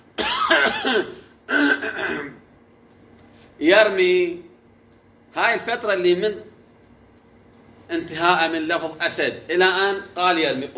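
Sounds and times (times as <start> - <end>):
person clearing throat: 0.2 - 2.5
speech: 0.5 - 2.4, 3.6 - 4.4, 5.3 - 6.5, 7.9 - 10.7.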